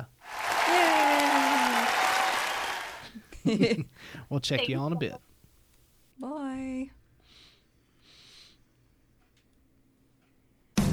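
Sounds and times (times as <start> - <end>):
applause sound effect: 0.2 - 3.1
laughter: 0.6 - 4.0
speech: 3.4 - 5.3.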